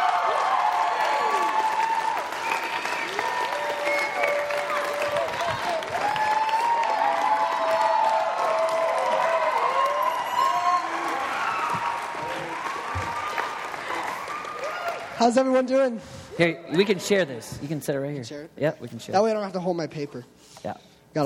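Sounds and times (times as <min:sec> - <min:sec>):
scattered cheers: 0:00.0 - 0:15.3
crowd applause for preacher: 0:00.0 - 0:15.6
speech: 0:15.2 - 0:21.2.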